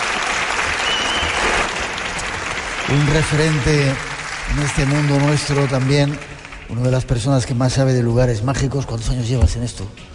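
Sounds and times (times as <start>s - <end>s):
audience applauding a guest: 0.0s - 7.6s
speech: 2.9s - 10.1s.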